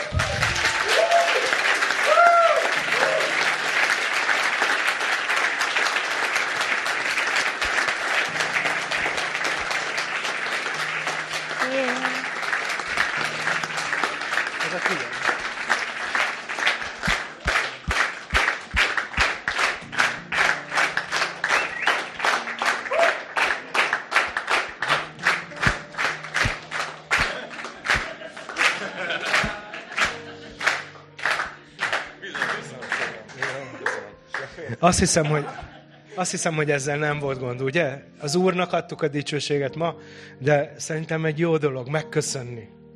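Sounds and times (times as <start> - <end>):
rhythmic clapping in unison: 0.0 - 35.2
crowd applauding: 0.0 - 35.5
laughter: 27.0 - 31.0, 32.2 - 36.4
speech: 34.8 - 42.8.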